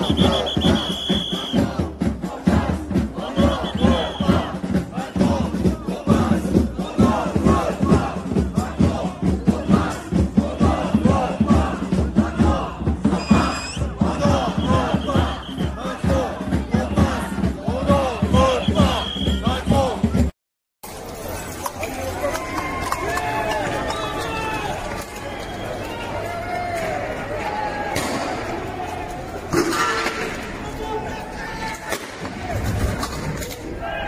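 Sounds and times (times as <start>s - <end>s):
repeated whistle-like tone: 0.0s - 1.7s, 3.3s - 4.5s, 13.2s - 15.8s, 18.5s - 19.6s, 25.2s - 25.9s
French protesters chanting and shouting in Paris: 0.0s - 20.3s, 21.0s - 34.0s
murmur of voices: 0.0s - 20.3s, 20.9s - 34.0s.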